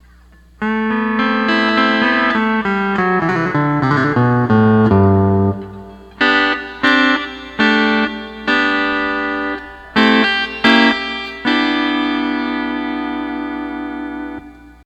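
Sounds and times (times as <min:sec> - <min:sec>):
12-string lap guitar playing: 0:00.6 - 0:14.8.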